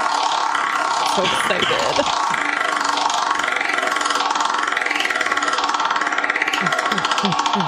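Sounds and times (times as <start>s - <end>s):
game wheel spinning and clicking: 0.0s - 7.6s
speech: 1.2s - 2.5s, 7.2s - 7.6s.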